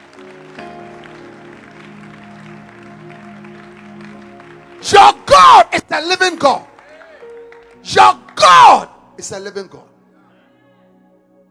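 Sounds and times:
congregation clapping hands in a church service: 0.0s - 8.9s
speech: 4.8s - 5.2s, 6.0s - 6.7s, 7.9s - 9.9s.

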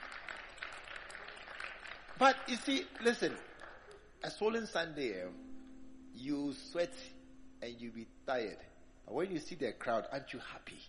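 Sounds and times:
audience clapping: 0.0s - 4.0s
speech: 2.2s - 3.5s, 4.2s - 5.5s, 6.2s - 10.8s.

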